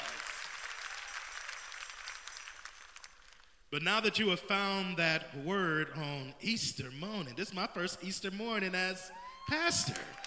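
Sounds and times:
audience applause: 0:00.0 - 0:03.2, 0:09.9 - 0:10.2
speech: 0:03.7 - 0:10.2.

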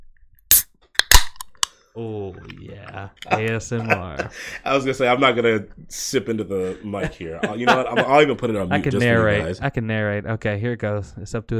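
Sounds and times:
can of hard seltzer opening: 0:00.5 - 0:01.7
speech: 0:02.0 - 0:11.5
laughter: 0:02.4 - 0:05.4, 0:06.4 - 0:09.6.

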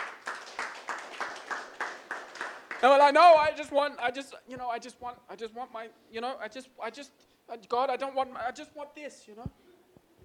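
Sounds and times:
audience clapping: 0:00.0 - 0:03.1
speech: 0:02.8 - 0:09.6.

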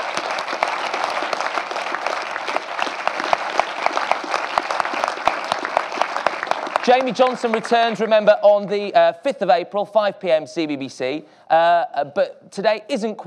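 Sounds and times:
huge round of audience applause: 0:00.0 - 0:08.1
speech: 0:06.9 - 0:13.2.

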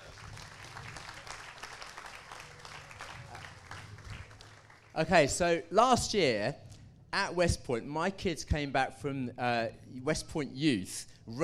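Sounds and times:
audience round of applause: 0:00.0 - 0:05.0
speech: 0:05.0 - 0:06.6, 0:07.2 - 0:11.4.

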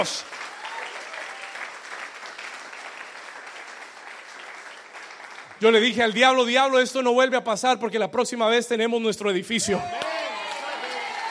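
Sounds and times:
speech: 0:00.0 - 0:00.4, 0:05.6 - 0:10.2
audience applause: 0:00.0 - 0:06.0, 0:09.9 - 0:11.2.

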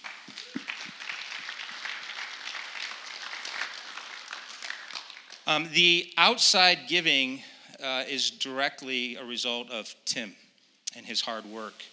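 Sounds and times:
audience round of applause: 0:00.0 - 0:05.7
speech: 0:05.5 - 0:10.4, 0:11.0 - 0:11.9.

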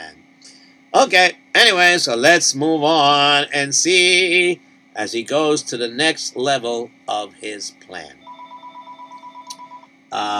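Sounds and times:
speech: 0:01.0 - 0:08.2, 0:10.1 - 0:10.3
telephone ringing with warbling electronic trill: 0:08.2 - 0:09.9.

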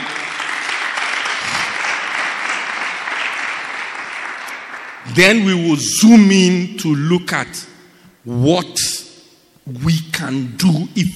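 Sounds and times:
audience clapping: 0:00.0 - 0:05.1
speech: 0:05.2 - 0:09.1, 0:09.7 - 0:11.1.

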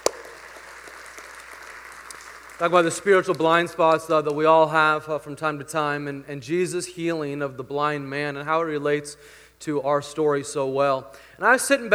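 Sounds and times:
crowd clapping: 0:00.0 - 0:04.8
speech: 0:02.6 - 0:11.9.

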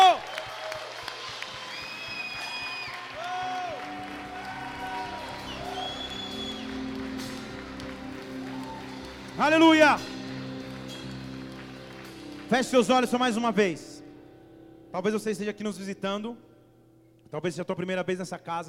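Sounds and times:
audience cheering and whooping: 0:00.0 - 0:09.6
audience applauding: 0:00.0 - 0:13.3
speech: 0:09.4 - 0:10.1, 0:12.5 - 0:13.9, 0:14.9 - 0:16.5, 0:17.3 - 0:18.6.

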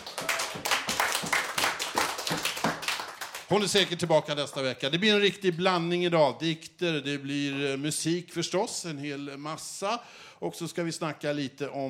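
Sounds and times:
small group clapping: 0:00.0 - 0:04.6
speech: 0:03.5 - 0:11.8.

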